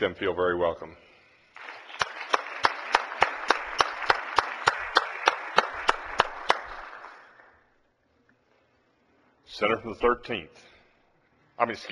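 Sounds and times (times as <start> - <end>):
speech: 0.0 - 1.1, 9.6 - 10.7, 11.6 - 11.9
applause in the Senate chamber: 1.6 - 7.6.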